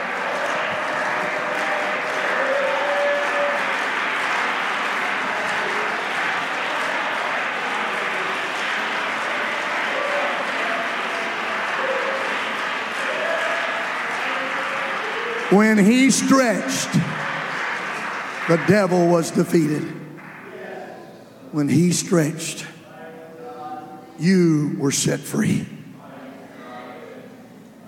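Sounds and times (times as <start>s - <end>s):
audience clapping hands: 0.0s - 20.7s
speech: 15.5s - 17.2s, 18.5s - 20.0s, 21.5s - 22.7s, 24.2s - 25.8s.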